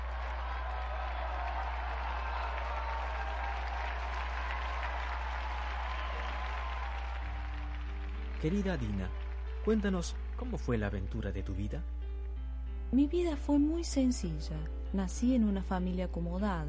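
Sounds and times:
audience applause: 0:00.0 - 0:11.6
speech: 0:08.4 - 0:12.0, 0:12.9 - 0:16.6.

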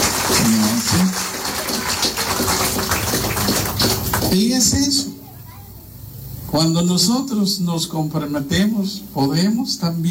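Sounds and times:
group applause: 0:00.0 - 0:04.4
speech: 0:04.3 - 0:05.0, 0:06.6 - 0:10.1.

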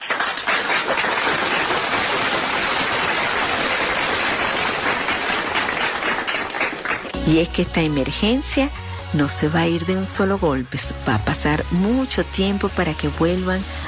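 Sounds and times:
audience applause: 0:00.0 - 0:07.2
speech: 0:07.3 - 0:13.8.

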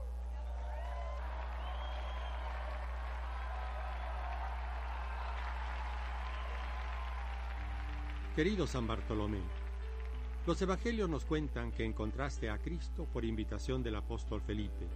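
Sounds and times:
applause: 0:00.4 - 0:11.6
speech: 0:08.4 - 0:09.7, 0:10.4 - 0:14.9.

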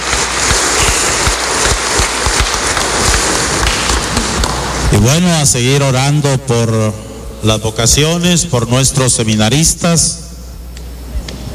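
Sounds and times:
applause: 0:00.0 - 0:04.7
speech: 0:05.0 - 0:10.2.

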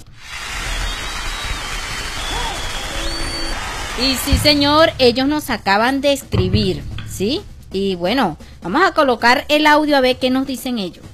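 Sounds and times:
applause: 0:00.0 - 0:04.3
speech: 0:04.0 - 0:11.1.

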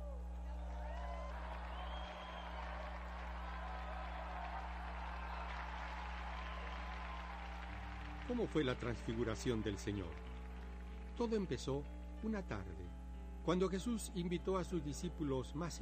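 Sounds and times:
scattered voices and cheers: 0:00.0 - 0:10.2
low electrical hum: 0:00.0 - 0:15.8
audience clapping: 0:00.4 - 0:12.8
speech: 0:08.3 - 0:10.3, 0:11.2 - 0:15.8.

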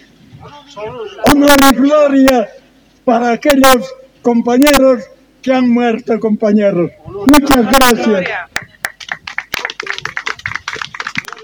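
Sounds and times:
speech: 0:00.4 - 0:08.5
loud sustained crowd applause: 0:07.8 - 0:11.4.

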